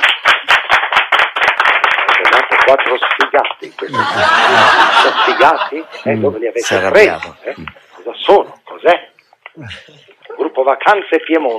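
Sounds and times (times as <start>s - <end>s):
recorded fake applause: 0.0s - 5.4s
speech: 2.7s - 11.5s
laughter: 3.7s - 7.9s.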